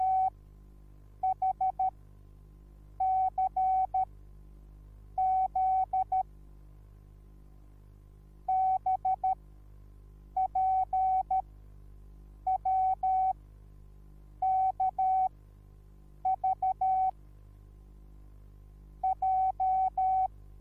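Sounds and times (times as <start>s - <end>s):
morse code beeps: 0.0s - 0.3s, 1.3s - 1.9s, 3.0s - 4.0s, 5.2s - 6.2s, 8.5s - 9.4s, 10.4s - 11.4s, 12.5s - 13.3s, 16.3s - 17.1s, 19.0s - 20.3s.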